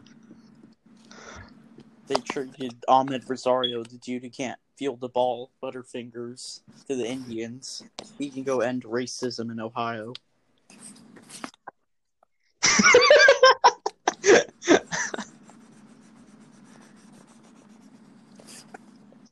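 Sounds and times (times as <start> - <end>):
speech: 2.1 - 10.2
marker scratching on paper: 10.7 - 11.6, 15.2 - 19.2
laughter: 12.6 - 15.4.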